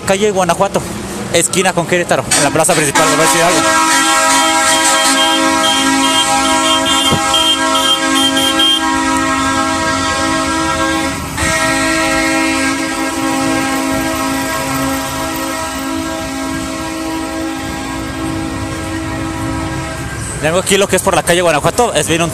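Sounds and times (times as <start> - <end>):
speech: 0.1 - 3.9, 20.4 - 22.3
train horn from parade train: 2.7 - 20.4.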